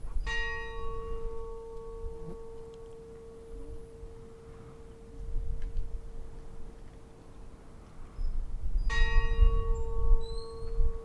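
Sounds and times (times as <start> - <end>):
Stadastadur church funeral bell ringing: 0.3 - 5.4, 8.9 - 11.0.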